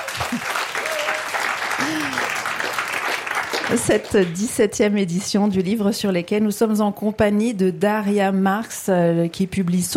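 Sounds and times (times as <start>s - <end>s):
audience clapping at the Le Livre sur les quais book festival in Morges: 0.0s - 5.5s
speech: 0.3s - 0.6s, 3.7s - 9.9s.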